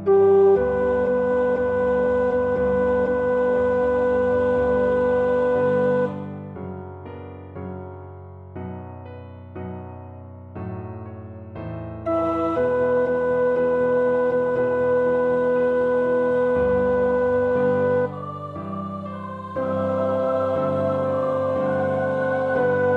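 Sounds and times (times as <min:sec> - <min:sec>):
alto 2 choir part practice singing: 0:00.1 - 0:06.2, 0:12.1 - 0:22.9.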